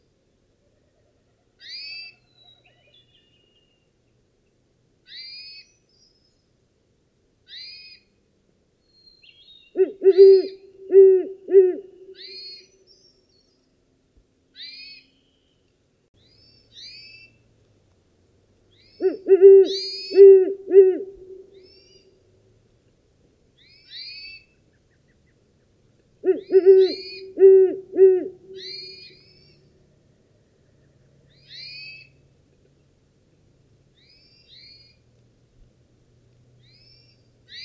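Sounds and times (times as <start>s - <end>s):
Great Horned Owl hooting: 9.7s - 12.7s, 19.0s - 22.0s, 26.2s - 29.6s.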